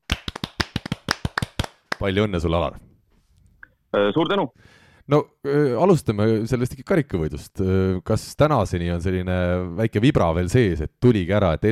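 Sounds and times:
small studio applause: 0:00.0 - 0:02.1
speech: 0:02.0 - 0:02.9, 0:03.9 - 0:11.7.

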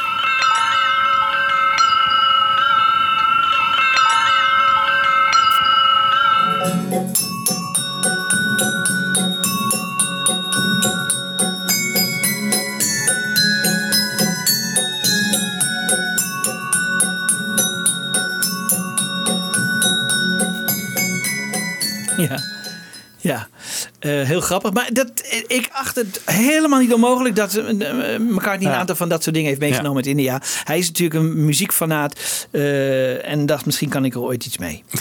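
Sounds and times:
boy playing Indian glass bowls: 0:00.0 - 0:23.2
laughter: 0:22.1 - 0:22.6
speech: 0:24.4 - 0:34.9.

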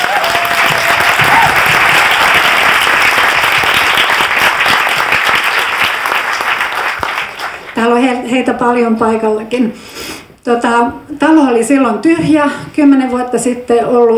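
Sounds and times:
audience applause: 0:00.0 - 0:07.8
speech: 0:08.3 - 0:14.1.

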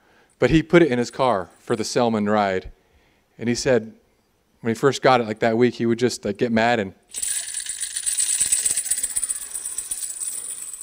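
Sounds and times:
speech: 0:00.4 - 0:02.8, 0:03.4 - 0:04.0, 0:04.6 - 0:07.2
tambourine being shaken: 0:07.1 - 0:10.8.

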